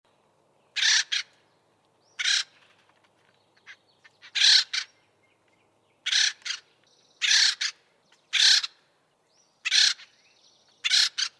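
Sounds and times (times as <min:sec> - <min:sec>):
bird squawking harshly: 0:00.8 - 0:01.3, 0:02.2 - 0:02.5, 0:04.2 - 0:04.9, 0:06.1 - 0:06.6, 0:07.2 - 0:08.8, 0:09.7 - 0:10.1, 0:10.8 - 0:11.3.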